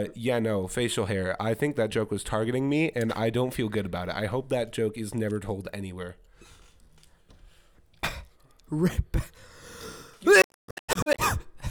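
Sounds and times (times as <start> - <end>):
speech: 0.0 - 6.3, 8.7 - 9.5, 10.2 - 10.4
cough into a microphone: 8.0 - 9.4, 10.9 - 11.6.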